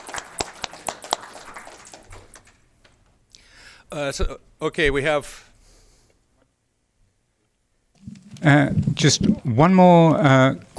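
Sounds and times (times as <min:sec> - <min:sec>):
audience clapping: 0:00.0 - 0:02.7
speech: 0:03.9 - 0:05.5, 0:08.4 - 0:10.7.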